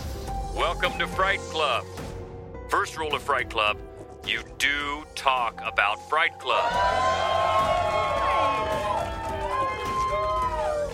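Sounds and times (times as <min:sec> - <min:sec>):
speech: 0:00.7 - 0:02.0, 0:02.7 - 0:07.4
live audience cheering: 0:06.5 - 0:10.9.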